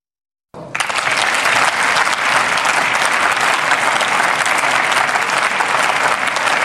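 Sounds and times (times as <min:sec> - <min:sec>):
applause sound effect: 0:00.6 - 0:06.6.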